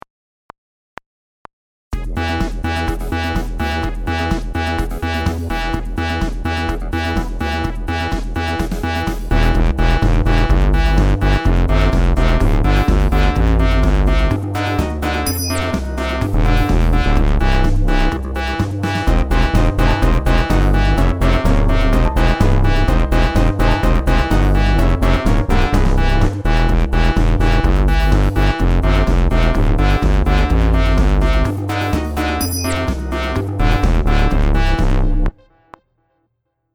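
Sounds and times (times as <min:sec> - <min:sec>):
dubstep music: 0:02.0 - 0:35.4.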